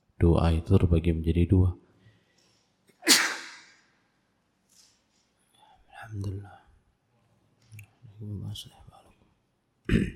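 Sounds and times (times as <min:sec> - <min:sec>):
speech: 0:00.2 - 0:01.8, 0:08.6 - 0:08.8
sneeze: 0:03.0 - 0:03.9.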